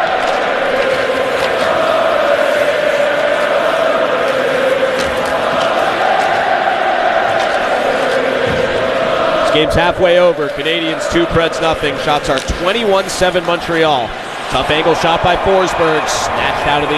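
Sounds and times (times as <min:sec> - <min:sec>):
Montreal hockey arena crowd cheering: 0:00.0 - 0:16.9
speech: 0:09.6 - 0:16.9.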